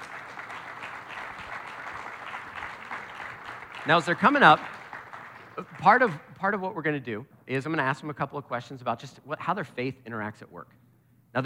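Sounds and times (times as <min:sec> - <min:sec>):
church audience applauding: 0:00.0 - 0:06.5
speech: 0:03.8 - 0:04.8, 0:05.6 - 0:10.8.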